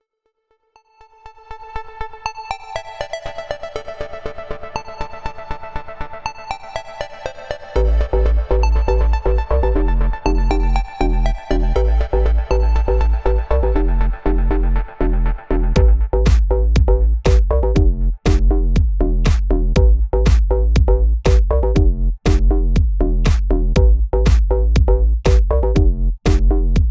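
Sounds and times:
bass: 7.8 - 26.8.

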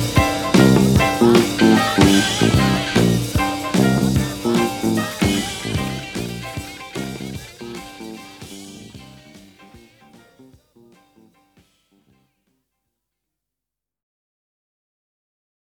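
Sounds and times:
boogie shuffle music: 0.0 - 11.8.

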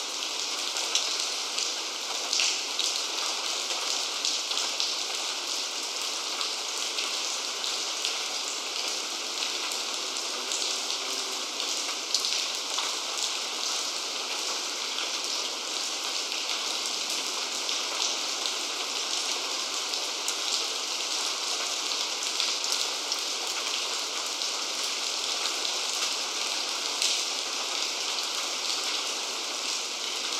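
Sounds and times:
white noise of rain drops: 0.0 - 30.3.

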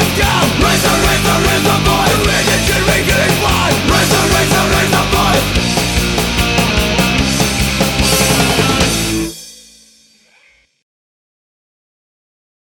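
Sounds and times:
anthem music: 0.5 - 9.9.

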